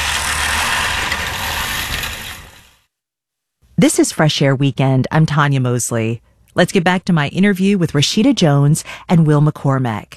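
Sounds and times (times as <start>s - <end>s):
human-powered push lawnmower whirring and rattling: 0.0s - 2.8s
speech: 3.8s - 10.1s.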